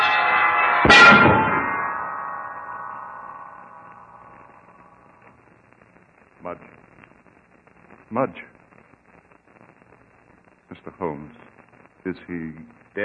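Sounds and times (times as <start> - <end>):
heavy church bell falling and crashing: 0.0 - 5.1
speech: 8.1 - 8.5, 12.1 - 13.0.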